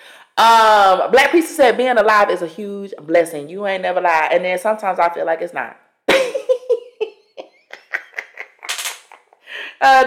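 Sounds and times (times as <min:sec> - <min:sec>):
speech: 0:00.4 - 0:05.8, 0:09.8 - 0:10.0
laughter: 0:06.2 - 0:09.4
chair creaking and cracking under someone's weight: 0:08.6 - 0:09.1.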